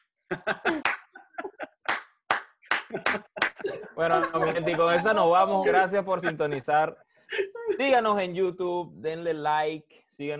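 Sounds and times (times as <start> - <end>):
laughter: 0.3 - 2.0, 2.8 - 7.8
speech: 0.5 - 1.0, 4.0 - 10.3
slow clapping: 0.7 - 1.2, 1.8 - 3.6.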